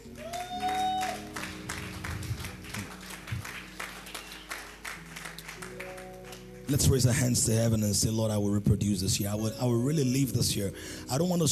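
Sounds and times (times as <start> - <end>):
audience applause: 0.0 - 6.8
speech: 6.7 - 11.4.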